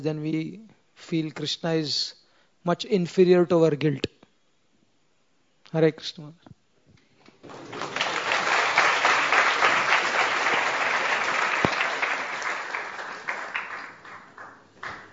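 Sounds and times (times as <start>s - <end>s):
speech: 0.0s - 4.1s, 5.7s - 6.6s
audience clapping: 7.3s - 15.1s.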